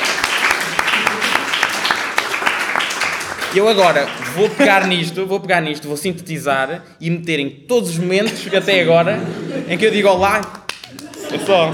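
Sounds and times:
group clapping: 0:00.0 - 0:05.1, 0:10.0 - 0:11.7
laughter: 0:00.0 - 0:05.2, 0:08.1 - 0:11.7
speech: 0:03.6 - 0:10.5, 0:11.3 - 0:11.7.

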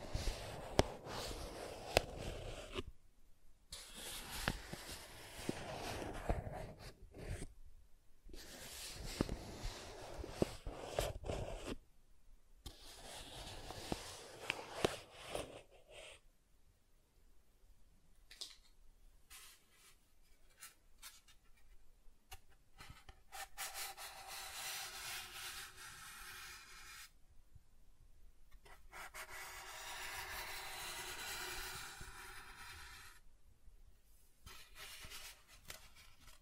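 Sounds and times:
soft tracing across smooth and rough surfaces: 0:00.0 - 0:02.9, 0:03.8 - 0:07.4, 0:08.4 - 0:11.8, 0:12.7 - 0:16.2, 0:23.4 - 0:27.1, 0:28.7 - 0:33.2.

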